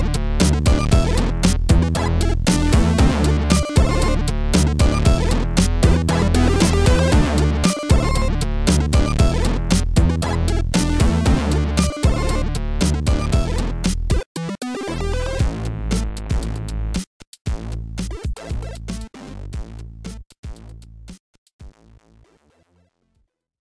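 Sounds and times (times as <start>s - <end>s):
game soundtrack music: 0.0s - 16.4s.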